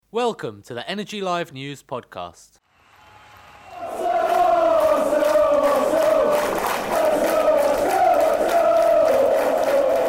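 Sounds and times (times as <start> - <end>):
speech: 0.1 - 2.6
football crowd at Arsenal's Emirates Stadium on match day: 2.7 - 10.0.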